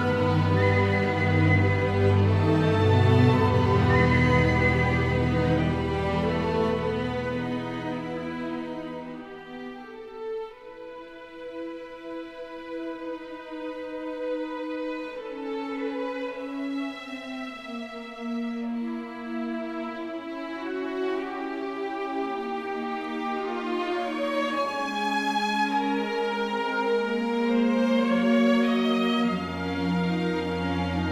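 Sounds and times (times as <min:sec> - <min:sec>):
piccolo: 0:00.0 - 0:06.6
flute: 0:00.0 - 0:31.1
string orchestra: 0:00.0 - 0:31.1.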